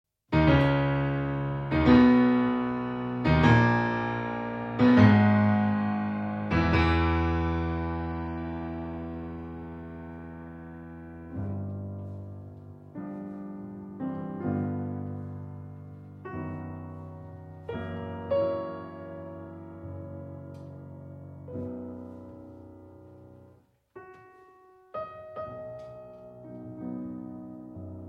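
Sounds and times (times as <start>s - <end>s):
piano sonata largo in B minor: 0.3s - 28.0s.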